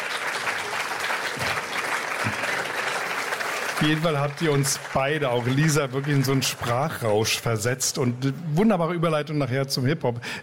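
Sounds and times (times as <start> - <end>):
audience applause: 0.0 - 8.2
speech: 3.8 - 10.4.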